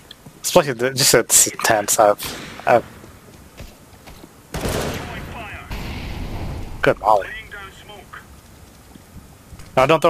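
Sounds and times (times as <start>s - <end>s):
speech: 0.4s - 2.9s, 6.8s - 7.4s, 9.8s - 10.0s
gunfire in a counter-terrorist shooter video game: 4.5s - 7.5s.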